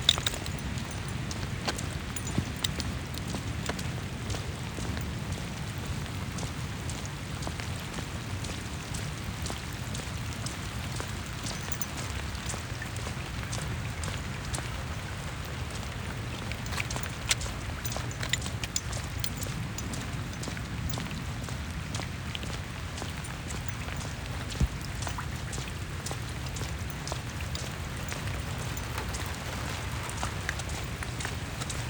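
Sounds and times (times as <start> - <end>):
steady rain in a street pattering on tree leaves in Phoenix, Arizona: 0.2 - 18.3, 19.4 - 31.8.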